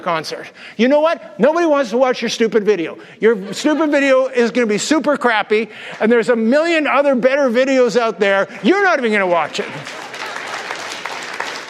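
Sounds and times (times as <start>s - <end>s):
speech: 0.0s - 10.1s
laughter: 3.2s - 6.5s, 8.4s - 10.9s
audience cheering and applause: 9.3s - 11.6s.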